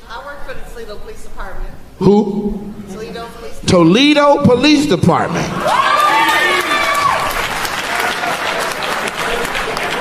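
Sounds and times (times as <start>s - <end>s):
speech: 0.5s - 5.9s
audience clapping: 5.6s - 9.9s.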